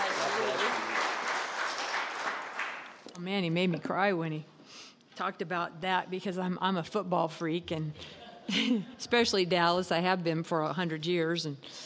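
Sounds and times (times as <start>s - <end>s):
congregation clapping during a church service: 0.0s - 3.2s
speech: 3.2s - 11.8s.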